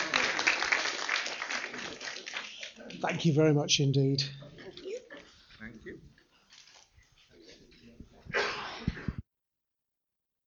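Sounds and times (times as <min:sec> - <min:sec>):
audience applause: 0:00.0 - 0:03.3
speech: 0:03.0 - 0:04.4.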